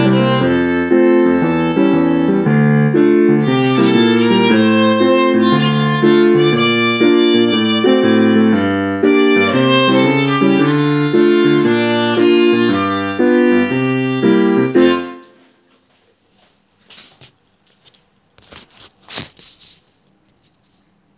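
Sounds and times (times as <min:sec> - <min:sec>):
violin: 0:00.0 - 0:15.3.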